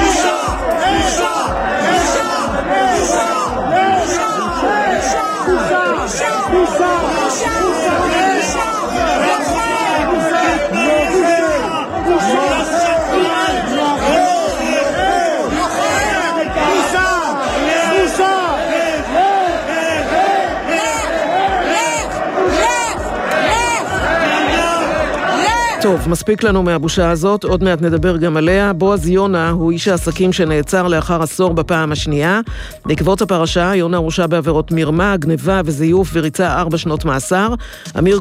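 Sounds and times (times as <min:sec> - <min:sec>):
crowd shouting and roaring in a heated parliamentary debate: 0:00.0 - 0:26.7
speech: 0:25.9 - 0:38.1.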